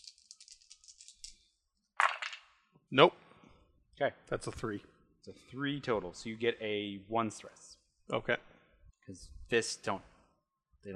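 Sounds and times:
dice rolled, rattling and clattering: 0.0 - 2.6
speech: 2.9 - 3.2, 4.0 - 8.4, 9.1 - 10.1.

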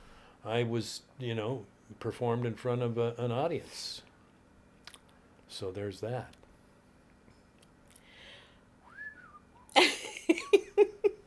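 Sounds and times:
speech: 0.4 - 4.1, 5.5 - 6.4
person whistling: 8.8 - 9.8.

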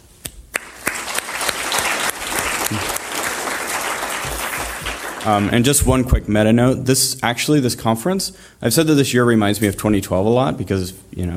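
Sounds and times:
audience applause: 0.6 - 5.7
speech: 2.7 - 2.9, 5.2 - 11.3.

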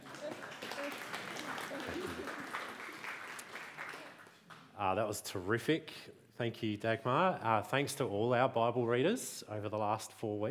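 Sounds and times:
audience applauding: 0.0 - 4.6
speech: 4.8 - 10.4.

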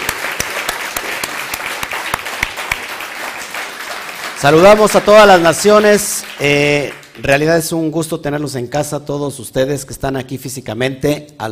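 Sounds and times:
audience applause: 0.0 - 7.5
speech: 4.4 - 11.5.

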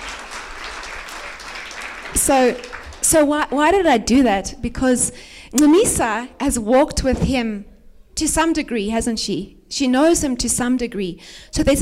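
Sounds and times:
audience clapping: 0.0 - 3.5
speech: 2.3 - 11.8.

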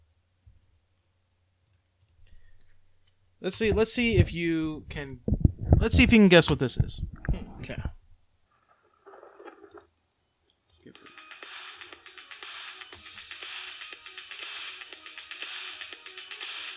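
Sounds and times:
speech: 3.4 - 7.9
electronic film soundtrack music: 11.0 - 16.7.

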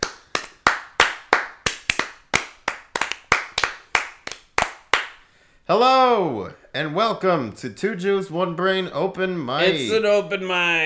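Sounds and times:
audience clapping for the MC at an open mic poetry night: 0.0 - 5.2
speech: 5.7 - 10.8.

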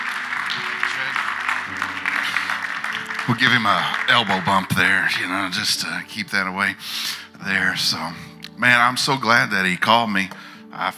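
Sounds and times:
church congregation applauding to welcome a pastor at a morning service: 0.0 - 6.0
speech: 3.3 - 10.9.

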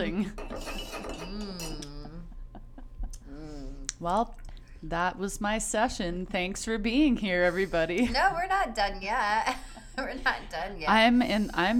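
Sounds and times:
speech: 0.0 - 0.4, 4.0 - 11.7
spoon clinking against a cup while stirring thick cacao: 0.4 - 1.9.

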